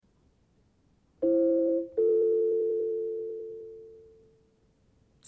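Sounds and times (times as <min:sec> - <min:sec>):
recorder playing: 0:01.2 - 0:04.1.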